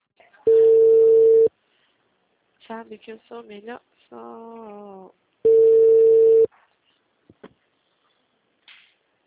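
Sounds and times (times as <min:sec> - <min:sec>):
telephone busy signal: 0:00.5 - 0:01.5, 0:05.5 - 0:06.5
speech: 0:02.7 - 0:05.2.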